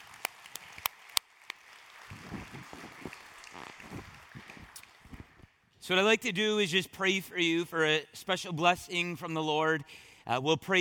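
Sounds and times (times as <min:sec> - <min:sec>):
audience applause: 0:00.0 - 0:05.4
speech: 0:05.9 - 0:10.7.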